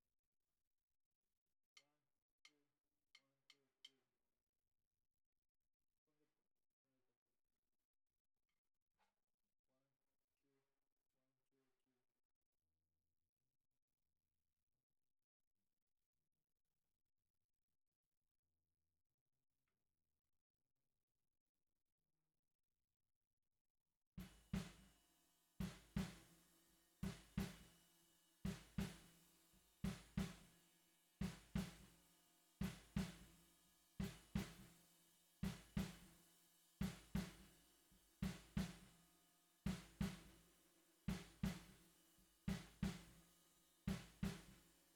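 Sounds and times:
bottom snare drum: 24.2s - 25.0s, 25.6s - 30.6s, 31.2s - 39.0s, 39.7s - 44.7s.

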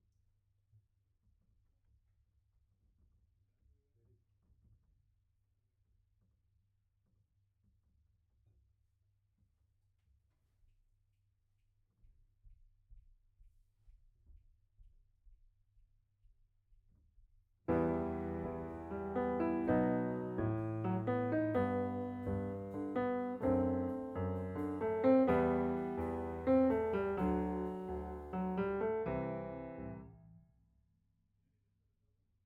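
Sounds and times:
piano note B: 17.7s - 30.3s.

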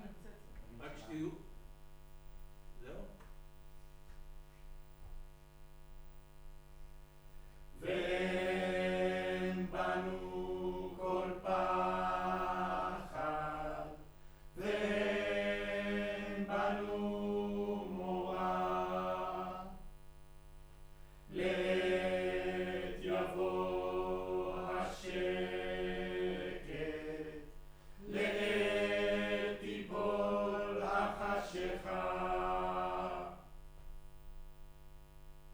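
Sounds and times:
choir singing in room: 7.8s - 19.9s, 21.3s - 33.5s.

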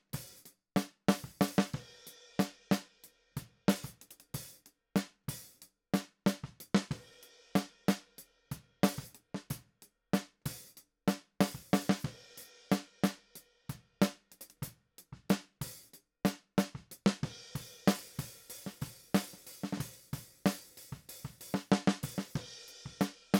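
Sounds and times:
snare drum: 0.8s - 2.8s, 6.0s - 8.0s, 8.8s - 9.5s, 11.1s - 13.2s, 16.3s - 23.3s.

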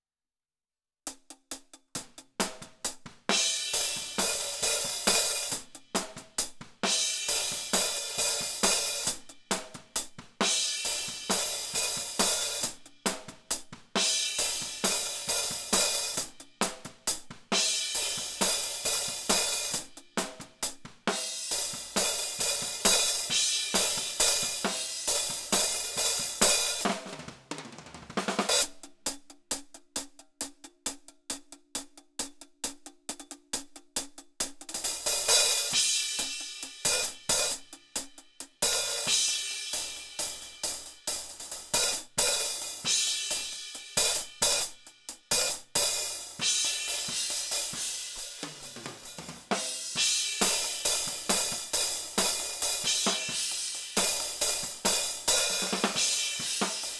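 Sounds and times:
hi-hat: 1.1s - 27.0s, 28.4s - 56.9s.

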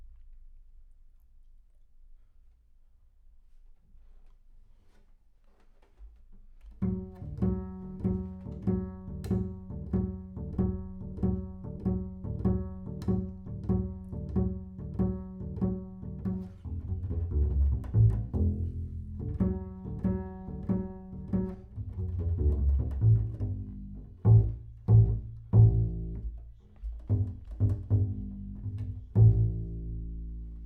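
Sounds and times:
bass sound: 6.8s - 30.6s.

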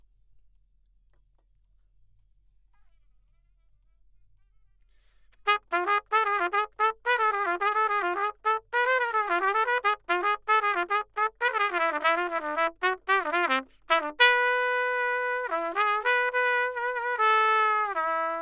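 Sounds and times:
trumpet: 5.4s - 18.4s.

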